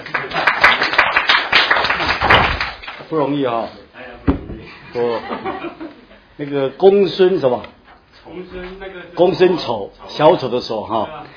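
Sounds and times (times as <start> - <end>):
audience clapping: 0.0 - 3.1
speech: 3.1 - 3.9, 4.9 - 11.3
laughter: 4.6 - 6.3.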